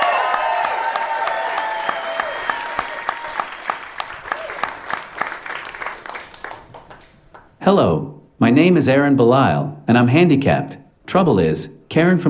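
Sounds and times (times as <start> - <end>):
audience applause: 0.0 - 7.5
speech: 7.6 - 12.2.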